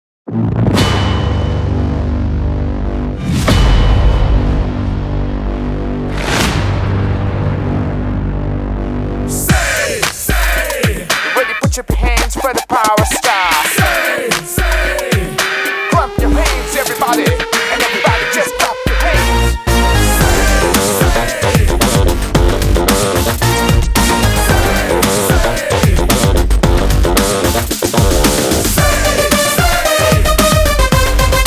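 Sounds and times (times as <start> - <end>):
theme music: 0.3 - 31.4.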